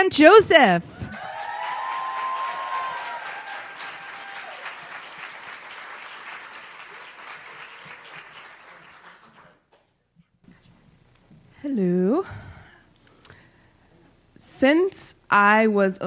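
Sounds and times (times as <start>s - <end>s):
speech: 0.0s - 1.0s, 14.6s - 16.0s
audience applause: 1.1s - 9.7s.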